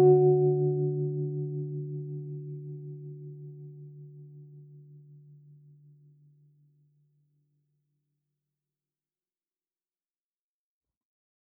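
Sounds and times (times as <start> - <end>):
instrumental music: 0.0 - 5.2.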